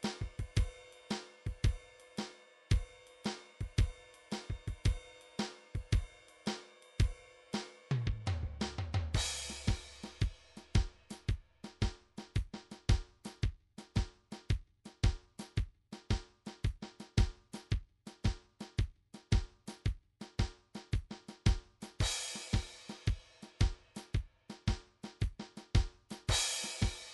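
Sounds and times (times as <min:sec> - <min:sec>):
swing ride cymbal in a blues beat: 0:00.0 - 0:11.9, 0:21.9 - 0:24.7, 0:26.2 - 0:27.1
kick drum in a blues beat: 0:00.2 - 0:00.8, 0:01.5 - 0:01.9, 0:02.7 - 0:03.0, 0:03.6 - 0:05.1, 0:05.8 - 0:06.1, 0:07.9 - 0:27.1.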